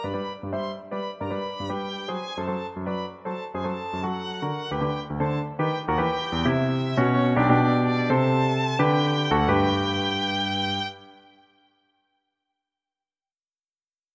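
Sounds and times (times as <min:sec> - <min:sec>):
lively mazurka music: 0:00.1 - 0:11.2.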